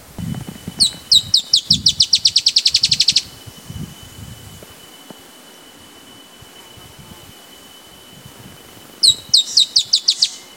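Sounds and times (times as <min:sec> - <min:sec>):
dusky-tailed antbird song: 0:00.3 - 0:04.2, 0:08.9 - 0:10.5.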